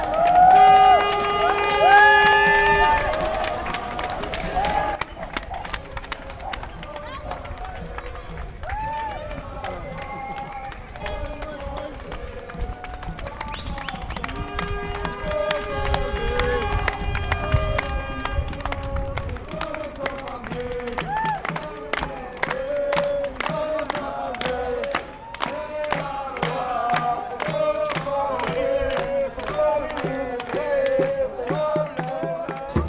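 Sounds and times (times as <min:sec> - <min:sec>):
marching crowd arriving at Place Howard in Saint-Josse: 0:00.0 - 0:32.8.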